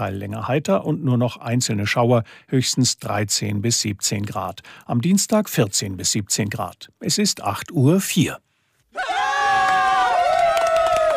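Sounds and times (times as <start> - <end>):
speech: 0.0 - 9.1
applause from a crowd: 9.1 - 11.1.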